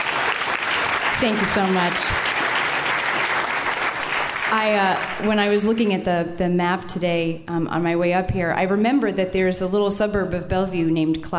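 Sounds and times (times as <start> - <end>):
audience applause thanking the event helpers: 0.0 - 5.4
speech: 1.2 - 2.2, 4.5 - 11.3.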